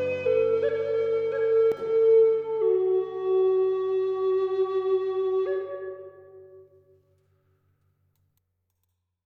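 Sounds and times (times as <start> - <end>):
Eastern Red Cedar flute with six holes in G playing at 432 Hz: 0.0 - 6.9.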